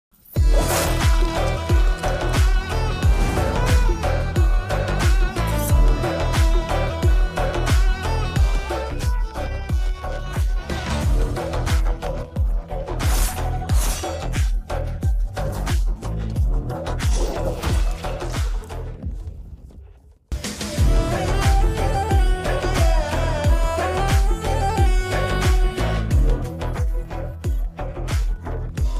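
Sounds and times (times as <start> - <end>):
trailer background music ringtone: 0.2 - 28.9.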